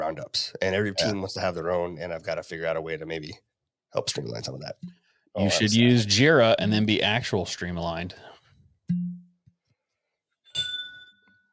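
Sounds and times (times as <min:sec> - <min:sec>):
speech: 0:00.0 - 0:08.3
whiskey bottle knocking: 0:08.9 - 0:09.4
glass clinking with a ringing tone: 0:10.5 - 0:11.5.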